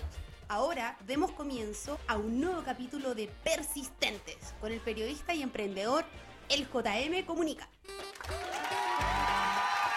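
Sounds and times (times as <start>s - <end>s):
speech: 0.5s - 7.8s
audience applause: 8.0s - 9.9s.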